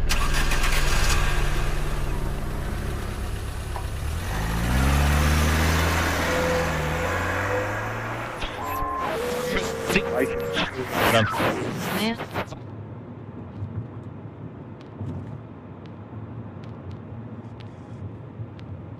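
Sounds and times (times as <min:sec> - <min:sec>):
getaway car engine starting and driving off: 0:00.0 - 0:12.6.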